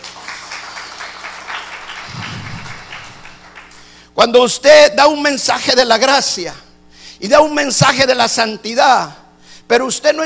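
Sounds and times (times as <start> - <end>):
audience applause: 0.0 - 3.9
speech: 4.2 - 10.2.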